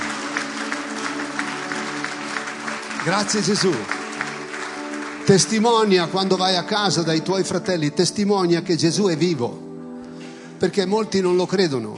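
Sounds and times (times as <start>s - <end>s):
audience applauding: 0.0s - 7.9s
speech: 3.0s - 4.0s, 5.3s - 9.6s, 10.6s - 11.9s.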